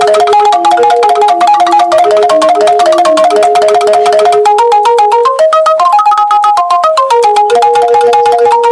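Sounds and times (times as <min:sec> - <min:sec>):
Balinese bamboo xylophone playing a repeating melody: 0:00.0 - 0:08.6.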